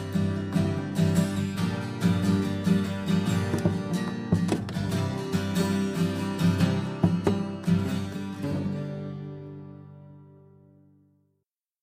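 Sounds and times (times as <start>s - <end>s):
instrumental trio music: 0.0s - 9.4s.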